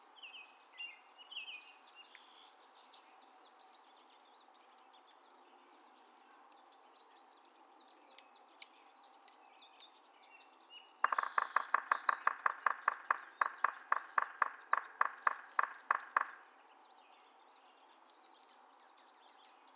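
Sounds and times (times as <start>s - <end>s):
Yellow-bellied Sapsucker drumming: 11.0s - 16.5s.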